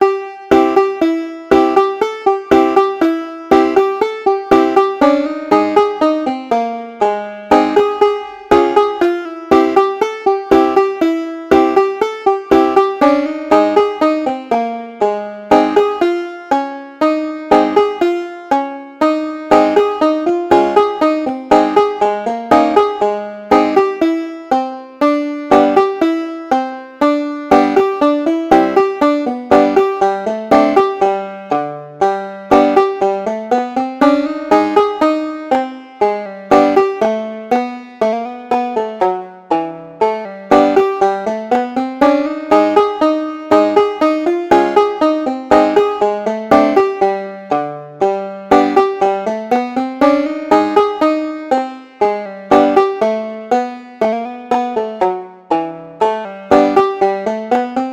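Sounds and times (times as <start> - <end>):
banjo: 0.0 - 57.9.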